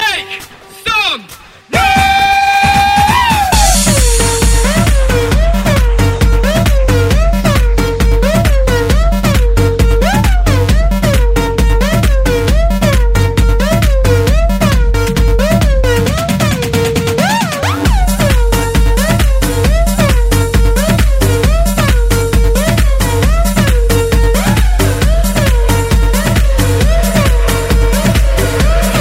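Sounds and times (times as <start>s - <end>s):
bass kick drum: 1.8s - 29.0s.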